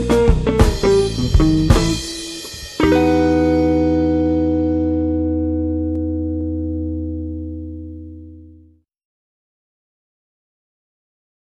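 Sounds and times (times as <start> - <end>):
blues jazz music: 0.0 - 8.6.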